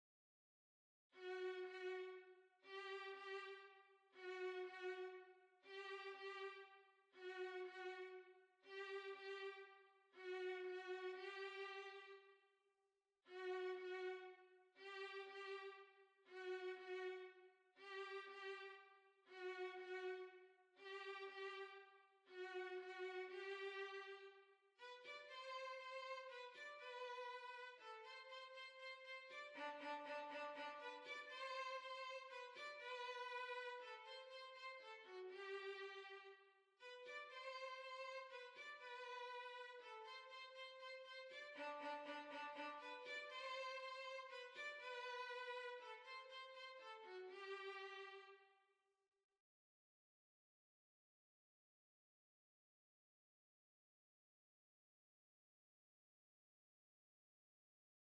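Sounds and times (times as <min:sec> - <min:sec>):
violin waltz: 0:01.2 - 0:12.2, 0:13.3 - 0:15.8, 0:16.4 - 0:48.4.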